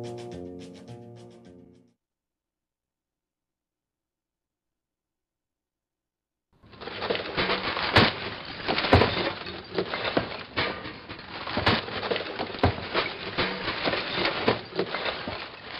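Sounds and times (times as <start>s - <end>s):
compost and recyclables tossed into a garbage bin: 6.7s - 15.7s.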